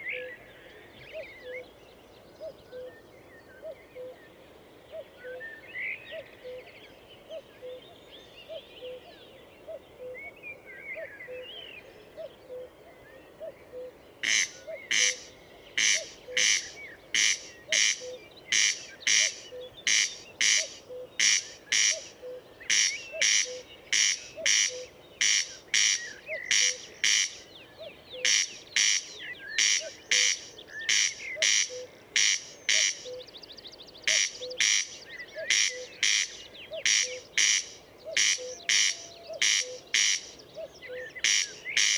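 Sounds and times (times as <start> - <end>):
other small birds chirping and whistling: 13.7 - 41.9
corn crake two-part rasping calls: 13.8 - 33.3, 34.0 - 41.9.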